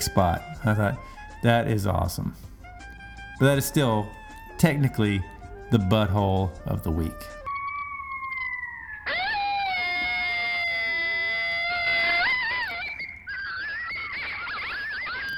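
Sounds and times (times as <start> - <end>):
pack of coyotes howling and yipping: 0.0 - 15.3
speech: 0.1 - 2.5, 3.4 - 7.4.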